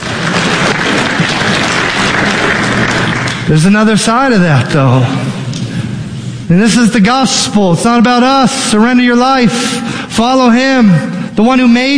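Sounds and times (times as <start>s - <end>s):
crowd clapping: 0.0s - 3.9s
speech: 3.5s - 5.3s, 6.5s - 11.9s.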